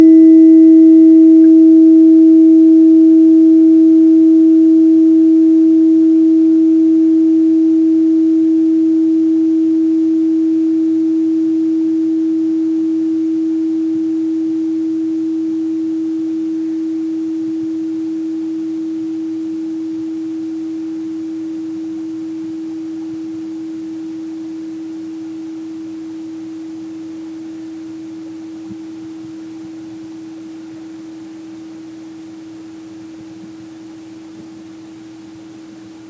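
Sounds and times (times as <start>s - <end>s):
tuning forks: 0.0s - 23.4s.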